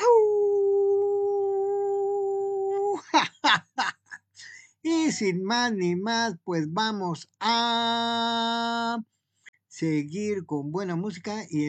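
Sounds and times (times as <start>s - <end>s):
man imitating a wolf's howl: 0.0s - 3.0s
speech: 5.1s - 9.1s, 9.8s - 11.6s.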